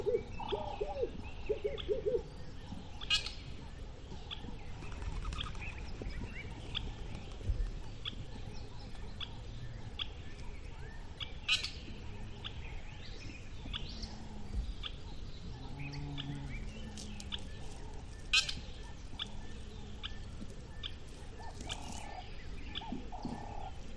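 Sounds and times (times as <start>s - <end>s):
country birds calling: 0.0s - 23.9s.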